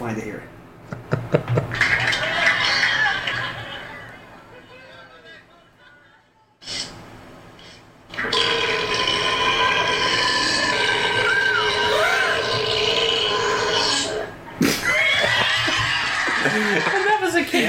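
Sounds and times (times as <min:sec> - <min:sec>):
laughter: 0:00.9 - 0:06.3, 0:14.6 - 0:17.6
camel burping: 0:08.1 - 0:14.3.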